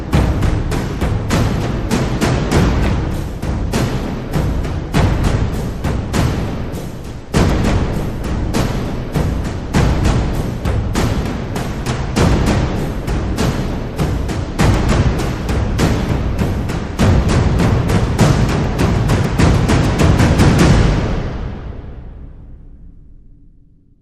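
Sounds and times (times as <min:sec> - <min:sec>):
drums without cymbals: 0:00.0 - 0:24.0.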